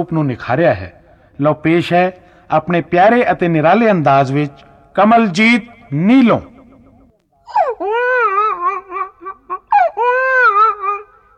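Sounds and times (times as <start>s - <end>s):
speech: 0.0s - 6.5s
baby crying during a comic stage performance: 5.7s - 11.3s.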